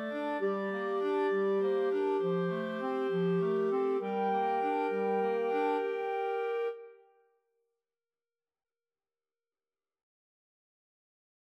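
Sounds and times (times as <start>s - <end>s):
clarinet quartet: 0.0s - 7.0s
violin: 0.0s - 7.0s.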